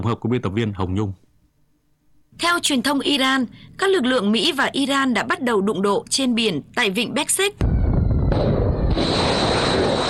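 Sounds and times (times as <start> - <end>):
speech: 0.0 - 1.2, 2.4 - 7.8
loud explosions: 7.6 - 10.0.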